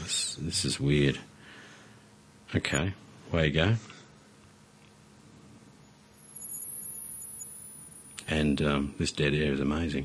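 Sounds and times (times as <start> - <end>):
low hiss: 0.0 - 10.0
speech: 0.4 - 1.3, 2.5 - 4.0, 8.3 - 10.0
high-frequency hearing test tone: 5.8 - 8.6.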